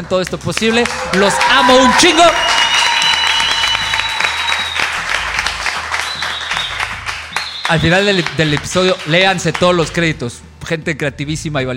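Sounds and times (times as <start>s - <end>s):
speech: 0.0s - 2.6s, 7.7s - 11.7s
high whistles and cheers: 0.6s - 9.2s
loud audience applause: 0.6s - 9.7s.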